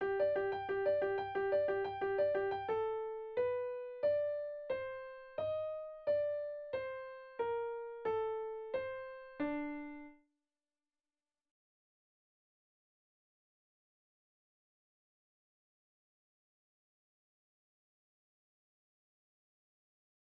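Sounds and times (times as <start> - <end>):
piano accompaniment figure: 0.0 - 10.2.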